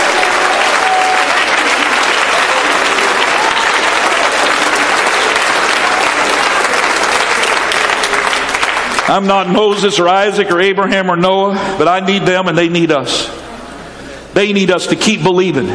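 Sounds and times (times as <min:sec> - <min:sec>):
audience clapping hands: 0:00.0 - 0:10.0
speech: 0:09.1 - 0:13.4, 0:14.4 - 0:15.7.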